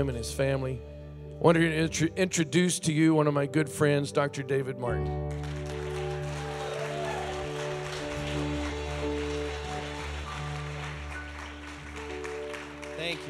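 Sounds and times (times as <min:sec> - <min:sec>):
speech: 0:00.0 - 0:05.5
audience clapping: 0:05.3 - 0:13.2.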